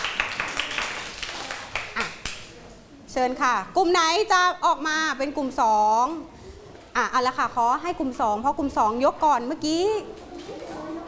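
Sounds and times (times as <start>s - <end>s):
classroom applause for classmates: 0.0s - 2.5s
speech: 3.2s - 6.4s, 7.0s - 10.2s.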